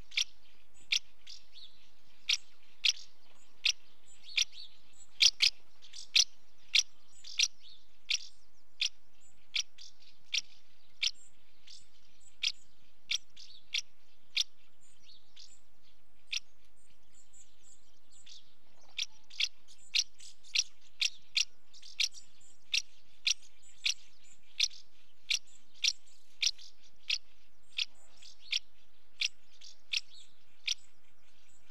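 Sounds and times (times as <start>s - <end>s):
female house martin calling at the nest: 0.0s - 11.2s, 18.3s - 30.9s.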